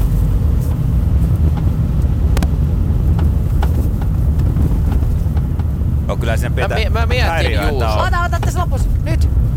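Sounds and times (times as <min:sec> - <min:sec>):
road rumble from a moving car: 0:00.0 - 0:09.5
knocks and clunks as the car goes over bumps: 0:02.4 - 0:05.8
speech: 0:06.3 - 0:09.5.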